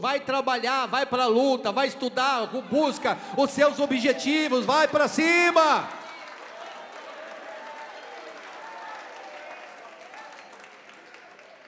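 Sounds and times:
speech: 0:00.0 - 0:06.0
audience clapping hands in praise: 0:04.0 - 0:11.6.

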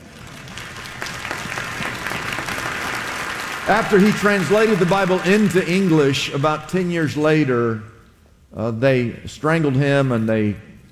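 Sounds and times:
audience applause: 0:00.0 - 0:06.8
speech: 0:03.7 - 0:07.9, 0:08.5 - 0:10.7.

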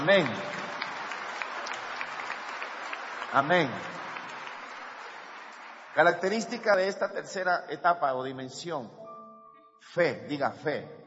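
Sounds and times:
speech: 0:00.0 - 0:00.6, 0:03.3 - 0:04.0, 0:06.0 - 0:09.0, 0:09.8 - 0:11.0
congregation clapping during a church service: 0:00.0 - 0:07.4.

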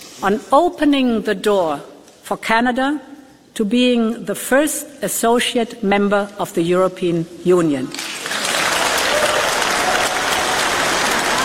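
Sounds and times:
speech: 0:00.2 - 0:08.1
audience applause: 0:08.0 - 0:11.4.

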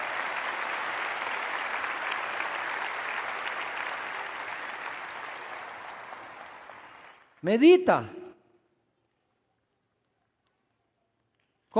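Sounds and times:
audience clapping: 0:00.0 - 0:08.3
speech: 0:07.4 - 0:08.2.

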